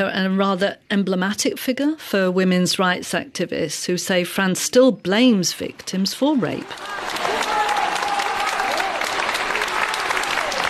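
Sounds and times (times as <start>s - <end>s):
speech: 0.0s - 7.3s
crowd applause outside a courtroom: 6.5s - 10.6s
raised voices and shouts outside a courtroom: 6.6s - 10.6s.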